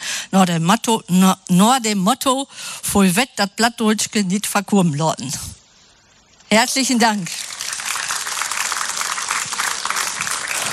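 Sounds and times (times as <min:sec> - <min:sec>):
speech: 0:00.3 - 0:05.6, 0:06.5 - 0:07.5
audience applause: 0:07.4 - 0:10.7.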